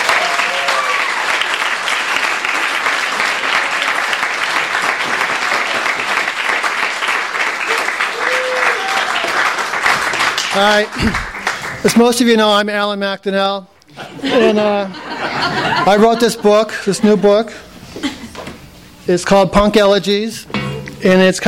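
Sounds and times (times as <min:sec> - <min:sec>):
voices whooping: 0:00.0 - 0:01.4, 0:07.7 - 0:09.4
audience applause: 0:00.0 - 0:11.9
speech: 0:10.6 - 0:18.1, 0:19.1 - 0:21.4
laughter: 0:13.9 - 0:18.5.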